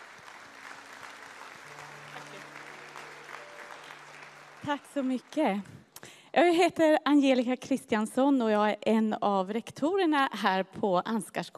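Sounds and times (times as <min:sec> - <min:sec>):
warm applause from audience: 0:00.0 - 0:05.8
speech: 0:04.7 - 0:11.5.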